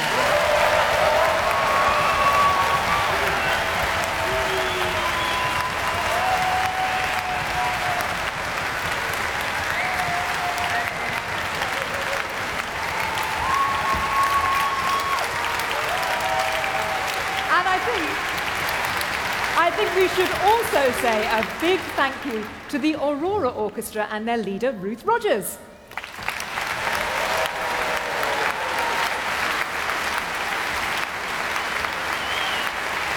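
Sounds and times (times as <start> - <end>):
whoops and cheers: 0.0 - 8.3, 9.6 - 18.2, 26.8 - 29.6
audience of boys and girls clapping for children's and youth chamber orchestras: 0.0 - 23.0, 25.9 - 33.1
speech: 21.0 - 25.7.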